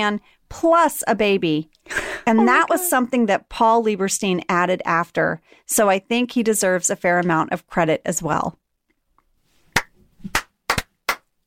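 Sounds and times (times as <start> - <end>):
speech: 0.0 - 8.6
slow clap building into big clap: 9.7 - 11.4.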